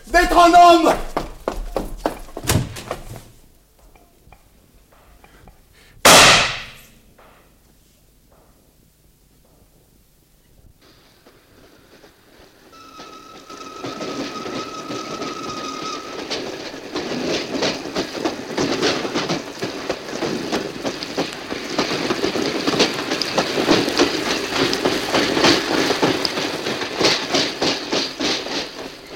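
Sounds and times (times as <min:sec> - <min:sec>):
train rolling along rails: 0:00.0 - 0:07.4, 0:09.6 - 0:29.1
speech: 0:00.1 - 0:01.1
thin high squeal: 0:12.6 - 0:17.8.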